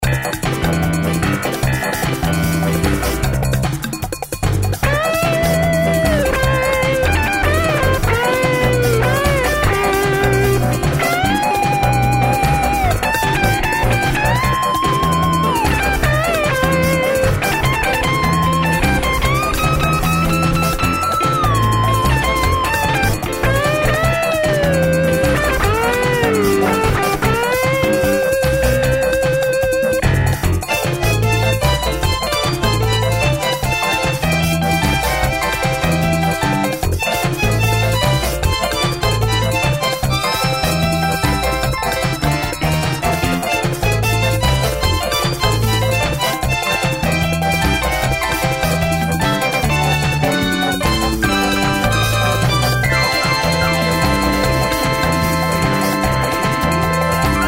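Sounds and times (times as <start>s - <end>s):
rock tango music: 0.0s - 57.4s.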